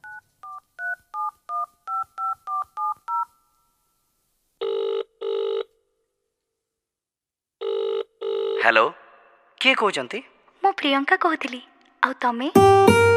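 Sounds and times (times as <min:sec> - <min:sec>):
telephone keypad dialing beeps: 0:00.0 - 0:03.3
long telephone ringing tones: 0:00.0 - 0:03.5, 0:04.6 - 0:05.7, 0:07.6 - 0:08.6
speech: 0:08.6 - 0:09.0, 0:09.6 - 0:13.0.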